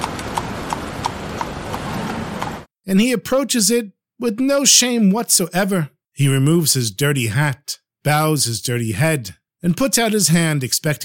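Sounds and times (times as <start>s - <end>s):
horse hooves clip-clopping pulling a carriage: 0.0s - 2.7s
speech: 2.9s - 11.0s.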